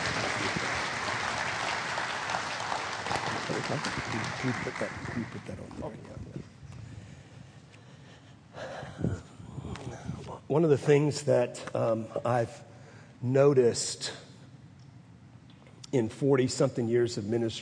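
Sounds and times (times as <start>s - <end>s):
audience clapping applause: 0.0s - 6.0s
speech: 3.5s - 6.2s, 10.5s - 14.2s, 15.9s - 17.6s.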